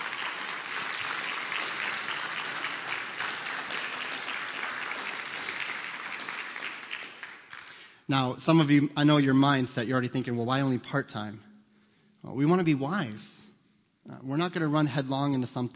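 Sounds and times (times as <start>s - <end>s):
audience applause: 0.0s - 8.0s
speech: 8.1s - 11.5s, 12.2s - 13.5s, 14.1s - 15.7s.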